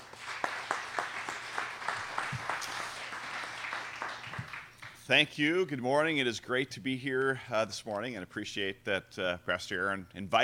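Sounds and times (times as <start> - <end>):
church congregation clapping to welcome a guest speaker: 0.0 - 5.1
speech: 5.1 - 10.4.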